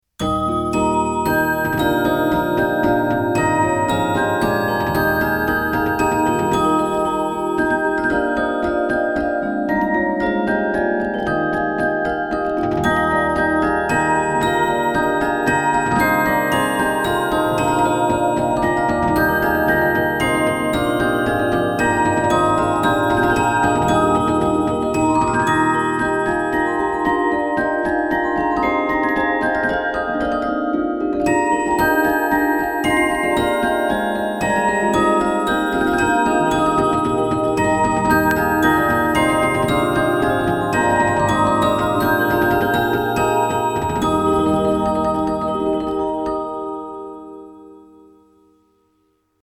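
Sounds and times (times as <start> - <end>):
music boxes: 0.2 - 48.6.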